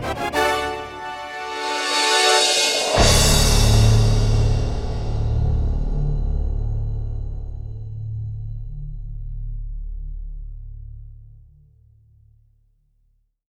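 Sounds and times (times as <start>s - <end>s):
film score music: 0.0s - 7.5s.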